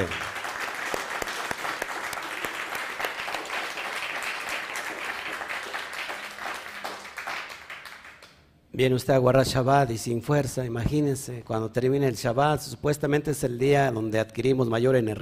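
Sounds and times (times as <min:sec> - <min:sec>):
speech: 0:00.0 - 0:00.2, 0:08.8 - 0:15.1
audience applause: 0:00.0 - 0:08.3.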